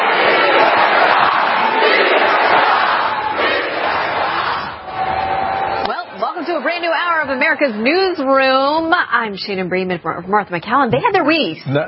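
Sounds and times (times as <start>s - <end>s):
protesters shouting at a town hall: 0.0s - 9.0s
speech: 7.6s - 11.8s.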